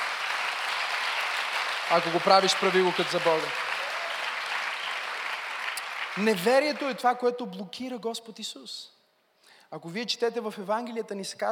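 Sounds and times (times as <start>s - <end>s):
audience applauding: 0.0s - 7.3s
speech: 1.9s - 3.6s, 6.2s - 9.0s, 9.7s - 11.5s.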